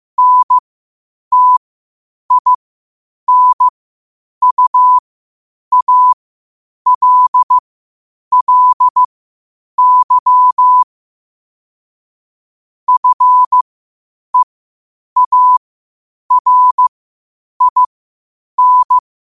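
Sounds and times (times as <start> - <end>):
morse code beeps at 5 wpm: 0.2 - 0.6, 1.3 - 1.6, 2.3 - 2.6, 3.3 - 3.7, 4.4 - 5.0, 5.7 - 6.2, 6.9 - 7.6, 8.3 - 9.1, 9.8 - 10.9, 12.9 - 13.6, 15.2 - 15.6, 16.3 - 16.9, 17.6 - 17.9, 18.6 - 19.0.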